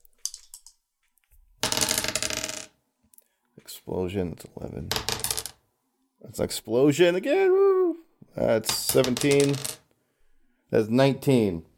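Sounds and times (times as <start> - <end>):
dice tumbling and rattling across a hard tabletop: 0.0 - 0.8, 1.6 - 2.8, 4.9 - 5.6, 8.6 - 9.9
speech: 3.7 - 5.4, 6.2 - 7.8, 8.4 - 9.8, 10.7 - 11.7.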